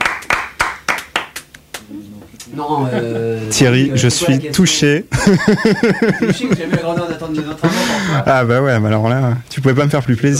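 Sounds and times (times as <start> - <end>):
one person clapping alone: 0.0 - 2.5
speech: 2.5 - 10.3
laughter: 2.6 - 3.6, 5.1 - 8.5.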